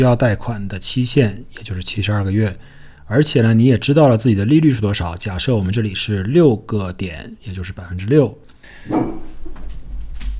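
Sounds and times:
speech: 0:00.0 - 0:09.2
dog barking: 0:08.9 - 0:09.3.

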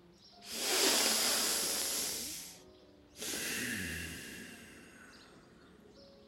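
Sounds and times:
deep breathing in through the nose: 0:00.4 - 0:02.6, 0:03.2 - 0:05.3.

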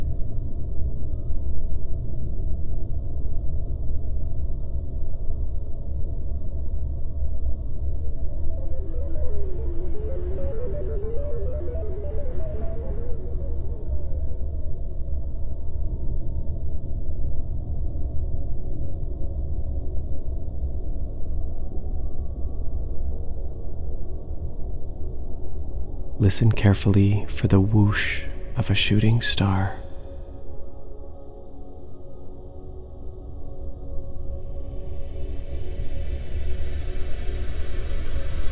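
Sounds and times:
low rumbling drone: 0:00.0 - 0:38.5
electronic beeps and chirps of a satellite signal: 0:08.2 - 0:14.4
speech: 0:26.3 - 0:29.8.

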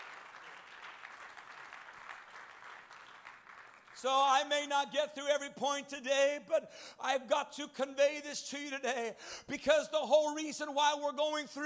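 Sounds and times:
audience clapping: 0:00.0 - 0:04.8
speech: 0:04.0 - 0:11.6.

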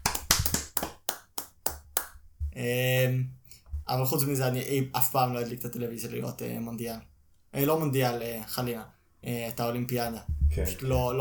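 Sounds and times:
hand clapping: 0:00.0 - 0:02.2
speech: 0:02.6 - 0:11.1.

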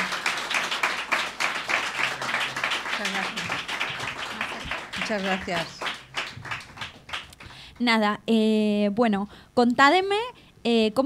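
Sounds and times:
audience applause: 0:00.0 - 0:07.5
speech: 0:05.1 - 0:05.8, 0:07.8 - 0:11.0.

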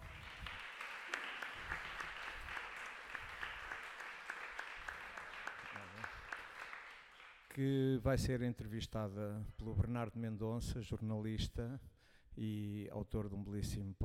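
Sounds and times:
audience applause: 0:00.0 - 0:07.5
speech: 0:07.6 - 0:14.0.

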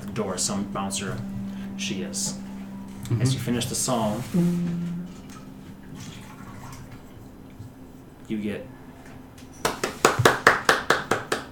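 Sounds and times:
speech: 0:00.2 - 0:02.5, 0:03.1 - 0:05.2, 0:08.3 - 0:08.8
hand clapping for the end of a song: 0:09.6 - 0:11.5.

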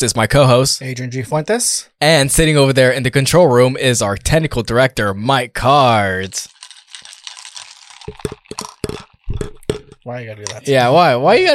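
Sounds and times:
speech: 0:00.0 - 0:06.6, 0:10.1 - 0:11.5
noisy slurp drinking a pina colada: 0:06.3 - 0:10.6.

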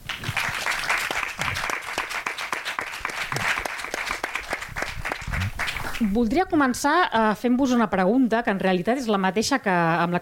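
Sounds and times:
audience applause: 0:00.0 - 0:06.1
speech: 0:06.0 - 0:10.1.

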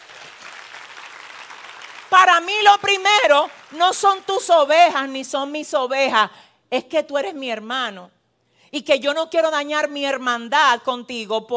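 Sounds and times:
audience applause: 0:00.0 - 0:04.5
speech: 0:02.1 - 0:11.5.

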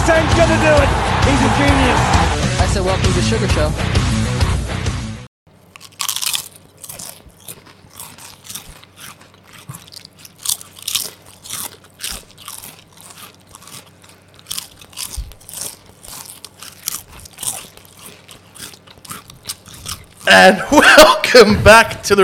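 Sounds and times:
speech: 0:00.1 - 0:04.0, 0:20.3 - 0:22.2
crunching on potato chips: 0:05.5 - 0:20.6.

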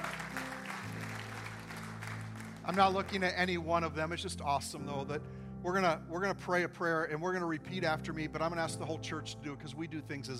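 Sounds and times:
audience applause: 0:00.0 - 0:03.3
speech: 0:02.7 - 0:10.3.

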